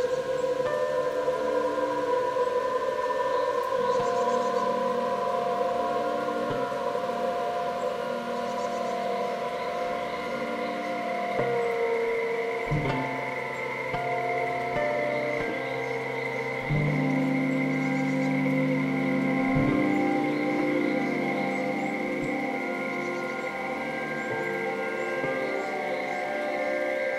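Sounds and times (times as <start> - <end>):
Takataka cricket chirping: 0.0 - 27.1
acoustic guitar playing: 7.8 - 27.1.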